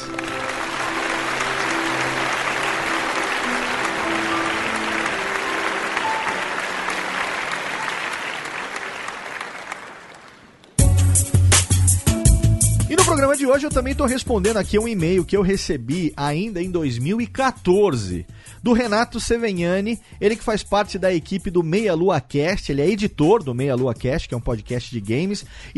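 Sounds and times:
loud music: 0.0 - 8.0, 10.8 - 16.1
crowd applause: 0.0 - 10.8
speech: 13.5 - 25.7.

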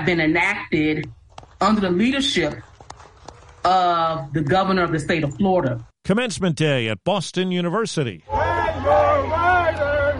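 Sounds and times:
speech: 0.0 - 2.7, 3.6 - 9.9
large commencement crowd chanting and booing: 8.2 - 10.1.

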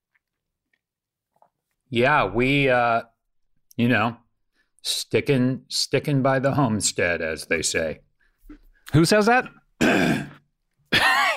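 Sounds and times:
speech: 1.9 - 3.1, 3.8 - 4.2, 4.8 - 10.3
person coughing: 9.8 - 11.3.

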